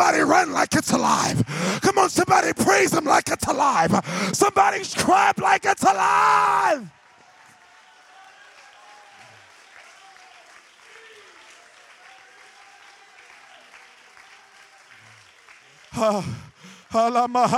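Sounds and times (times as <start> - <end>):
speech: 0.1 - 7.0, 16.0 - 17.5
audience clapping: 6.6 - 17.5.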